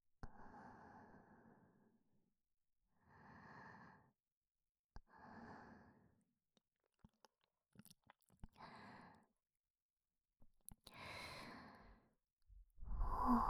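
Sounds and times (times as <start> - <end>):
breathing in the left ear: 0.3 - 1.9, 3.0 - 4.2, 5.1 - 6.1, 8.6 - 9.3, 10.9 - 12.1, 12.8 - 13.4.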